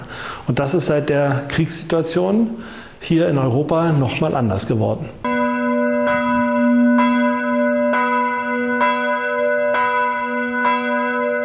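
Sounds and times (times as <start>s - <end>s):
speech: 0.5s - 5.3s
church bells ringing: 5.2s - 11.4s.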